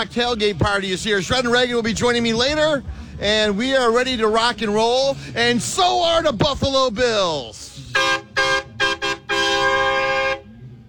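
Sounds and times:
speech: 0.0 - 8.2
car horn honking: 7.9 - 10.7.

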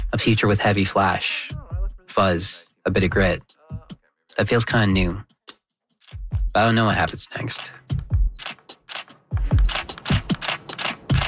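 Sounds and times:
speech: 0.1 - 3.6, 4.4 - 5.3, 6.6 - 8.0
camera shutter clicking: 8.4 - 11.2.

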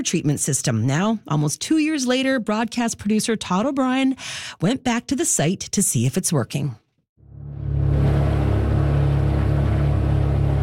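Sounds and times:
speech: 0.0 - 6.8
speedboat engine heading out from harbor: 7.2 - 10.6.

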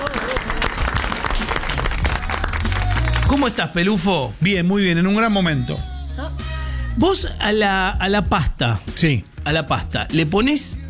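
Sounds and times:
audience applause: 0.0 - 3.6
speech: 3.3 - 10.8.

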